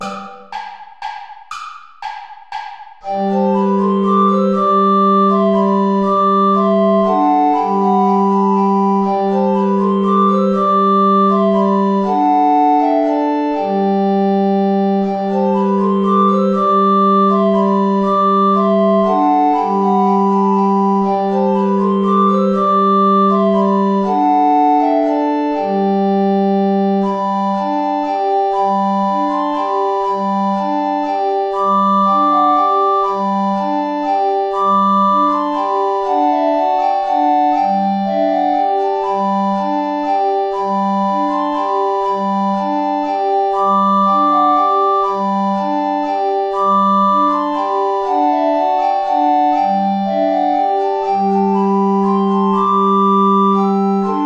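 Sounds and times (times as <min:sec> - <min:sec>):
saltarello music: 0:00.0 - 0:54.2.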